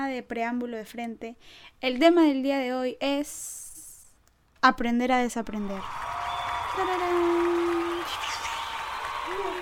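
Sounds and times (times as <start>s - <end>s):
speech: 0.2s - 3.6s, 4.6s - 6.1s, 6.7s - 7.5s
applause sound effect: 5.8s - 9.6s.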